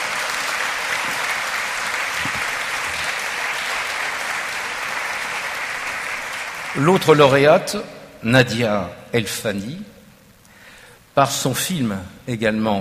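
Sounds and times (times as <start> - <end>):
audience applause: 0.0 - 7.3
speech: 6.8 - 9.9, 11.2 - 12.7.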